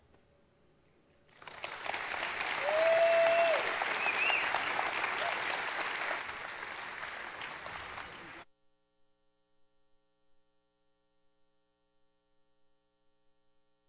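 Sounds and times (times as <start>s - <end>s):
audience applause: 1.3s - 8.4s.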